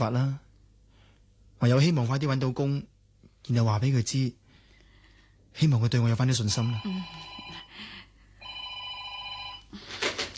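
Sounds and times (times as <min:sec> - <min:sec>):
speech: 0:00.0 - 0:00.4, 0:01.6 - 0:04.4, 0:05.5 - 0:07.6
telephone ringing with an electronic trill: 0:06.5 - 0:07.8, 0:08.4 - 0:09.8.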